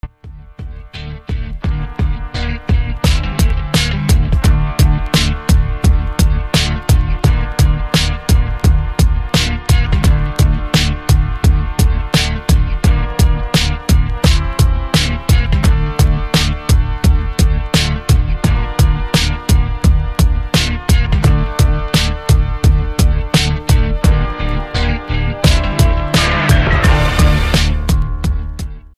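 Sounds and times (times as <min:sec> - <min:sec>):
instrumental music: 0:00.0 - 0:28.9.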